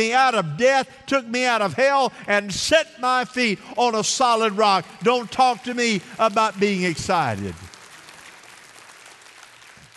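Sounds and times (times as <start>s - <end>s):
speech: 0.0s - 7.7s
crowd clapping in dull applause: 6.1s - 9.9s.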